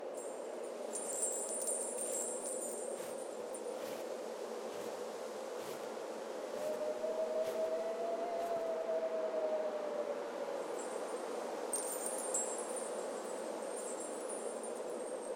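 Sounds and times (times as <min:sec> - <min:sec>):
winter ambience: 0:00.0 - 0:15.3.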